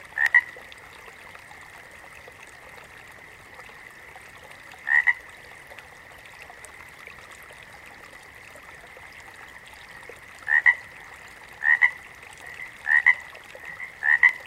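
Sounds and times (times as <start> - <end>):
water frog giving brief paired croaks: 0.1 - 0.6, 4.8 - 5.2, 10.4 - 10.9, 11.6 - 14.4.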